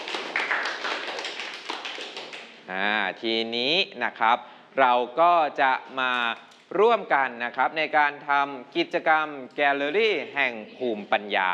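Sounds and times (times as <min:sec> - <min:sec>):
classroom applause: 0:00.0 - 0:02.6
speech: 0:02.7 - 0:11.5.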